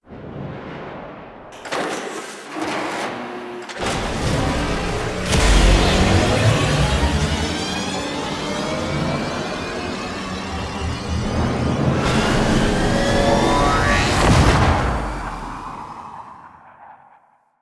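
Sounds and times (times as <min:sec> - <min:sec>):
Railjack spaceship doors: 0:00.1 - 0:16.3
Railjack spaceship taking off: 0:03.8 - 0:16.8.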